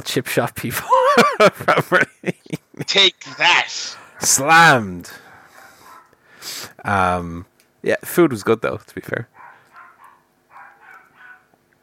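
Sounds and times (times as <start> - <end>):
speech: 0.0 - 5.2, 6.4 - 9.3
laughter: 0.8 - 3.3
dogs barking downstairs: 5.4 - 6.2, 9.3 - 11.6.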